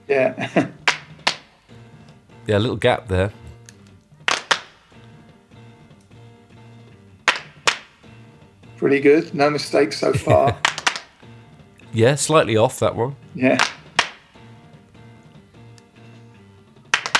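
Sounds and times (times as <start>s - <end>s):
laughter: 0.0s - 0.8s, 9.8s - 10.8s
speech: 0.1s - 0.7s, 2.5s - 3.4s, 8.9s - 10.7s, 12.0s - 13.8s
hand claps in a song's rhythm: 0.8s - 1.5s, 3.3s - 5.2s, 7.2s - 8.2s, 10.2s - 11.9s, 13.4s - 14.5s, 16.8s - 17.1s.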